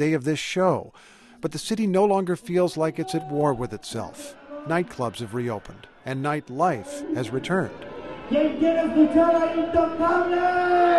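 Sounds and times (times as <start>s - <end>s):
speech: 0.0s - 10.9s
concert crowd cheering: 2.8s - 10.9s
sustained high pitched shout: 10.0s - 10.9s.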